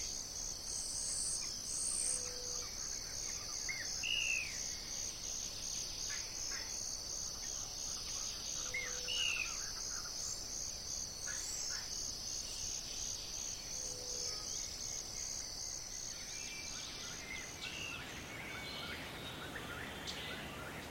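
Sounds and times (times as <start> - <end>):
high insect drone: 0.0 - 20.8
birds chirping in a forest: 16.1 - 20.8.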